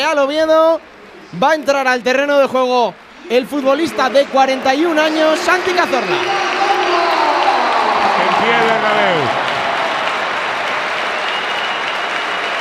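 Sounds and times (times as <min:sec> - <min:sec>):
speech: 0:00.1 - 0:06.6, 0:08.4 - 0:09.4
stadium crowd standing ovation applause: 0:03.4 - 0:12.6.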